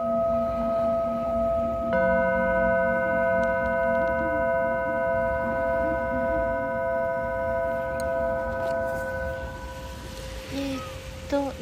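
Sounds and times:
Tibetan singing bowl ringing: 0.0s - 11.6s
rustling: 8.0s - 11.6s.

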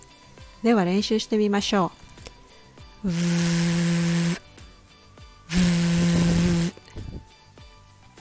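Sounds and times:
speech: 0.6s - 2.0s, 3.0s - 4.1s
person humming through a fricative like a vibrating phone: 3.0s - 4.4s, 5.5s - 6.8s.

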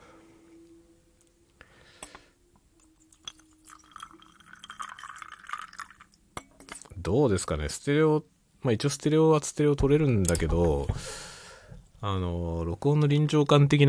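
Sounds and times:
coffee pouring into a cup: 2.8s - 7.0s
speech: 7.0s - 11.3s, 12.0s - 13.8s.

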